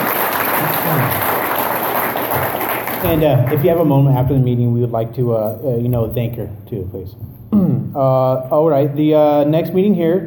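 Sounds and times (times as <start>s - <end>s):
audience applause for a speaker at a meeting: 0.0s - 3.9s
speech: 0.9s - 1.3s, 3.0s - 10.2s.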